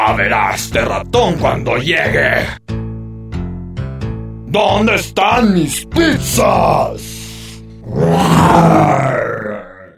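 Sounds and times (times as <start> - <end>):
speech: 0.1 - 2.7, 4.5 - 7.1
lion growling fiercely: 7.8 - 9.9.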